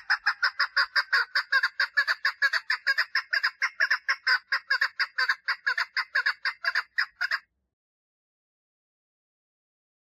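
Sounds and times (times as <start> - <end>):
partridge song: 0.0 - 7.5.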